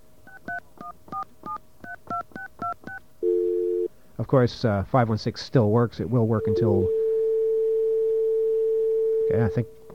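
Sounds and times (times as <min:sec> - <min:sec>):
touch-tone telephone keypad beeps: 0:00.3 - 0:03.0
steady telephone tone: 0:03.2 - 0:03.9, 0:06.4 - 0:09.9
speech: 0:04.3 - 0:07.0, 0:09.3 - 0:09.8.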